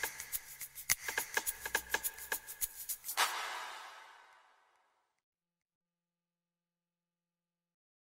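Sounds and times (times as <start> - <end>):
tropical house music: 0.0 - 4.3.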